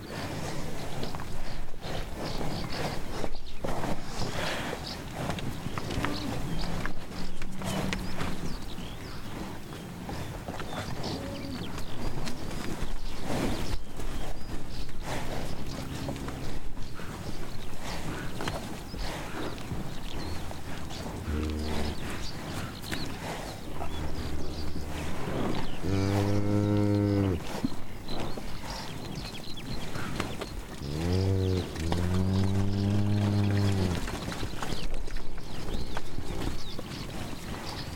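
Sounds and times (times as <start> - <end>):
grazing cattle in a meadow: 0.0 - 37.9.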